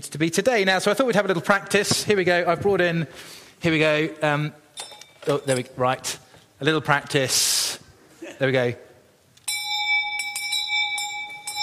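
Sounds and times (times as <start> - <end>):
speech: 0.0 - 4.6, 5.2 - 7.7, 8.4 - 8.8
bright high-pitched bell rung to call for supper: 4.8 - 5.7, 9.4 - 11.6.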